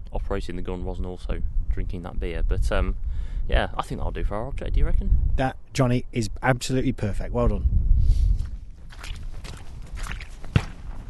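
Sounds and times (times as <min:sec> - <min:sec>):
speech: 0:00.3 - 0:08.3
footsteps off the beaten track on a public right of way: 0:08.2 - 0:11.0.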